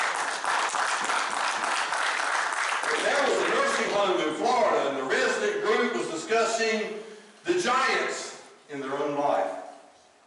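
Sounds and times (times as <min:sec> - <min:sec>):
church congregation clapping: 0:00.0 - 0:04.2
speech: 0:03.8 - 0:09.6.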